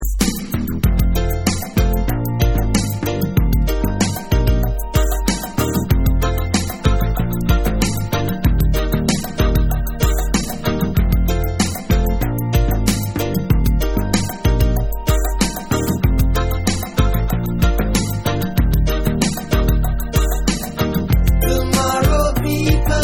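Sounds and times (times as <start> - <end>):
reggae music: 0.0 - 23.0.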